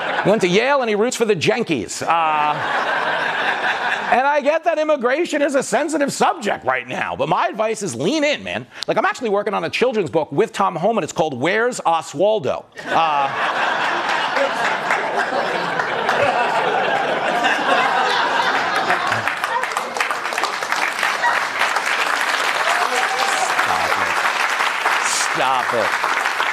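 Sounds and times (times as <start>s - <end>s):
laughter: 0.0s - 0.7s, 2.0s - 4.6s, 12.8s - 21.9s, 22.7s - 24.3s
speech: 0.2s - 15.4s, 25.4s - 26.2s
audience applause: 13.0s - 26.5s.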